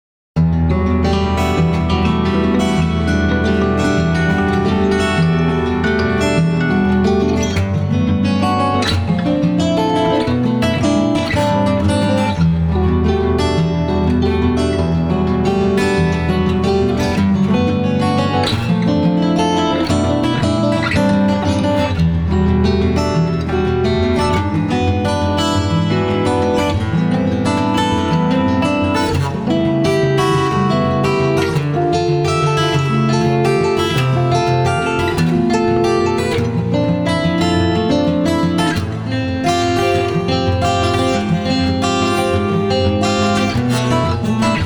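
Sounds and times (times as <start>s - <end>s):
acoustic guitar: 0.4s - 44.6s.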